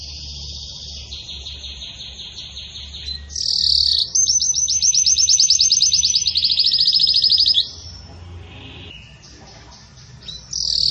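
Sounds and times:
Belgian canary singing: 0:00.0 - 0:10.9
low steady hum: 0:00.0 - 0:10.9.

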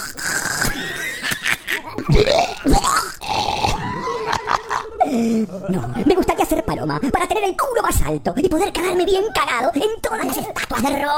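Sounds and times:
voice imitating vomiting: 0:00.0 - 0:04.9
laughter: 0:00.7 - 0:02.3, 0:03.8 - 0:07.7
speech: 0:02.1 - 0:02.4, 0:05.2 - 0:06.2, 0:06.9 - 0:11.1.

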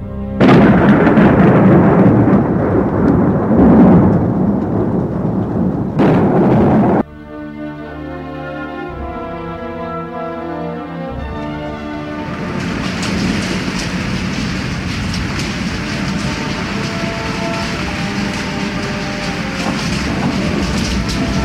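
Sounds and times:
heavy rain: 0:00.3 - 0:07.1, 0:07.9 - 0:21.4
thunder: 0:00.3 - 0:07.1, 0:11.1 - 0:21.4.

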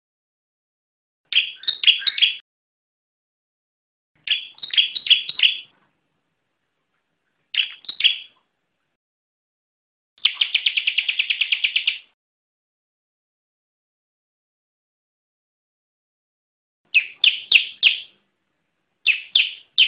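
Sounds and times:
bar-winged prinia song with rapid trill and ringing chirps: 0:01.3 - 0:02.4, 0:04.2 - 0:05.8, 0:07.5 - 0:08.4, 0:10.2 - 0:12.1, 0:16.9 - 0:18.2, 0:19.0 - 0:19.8.

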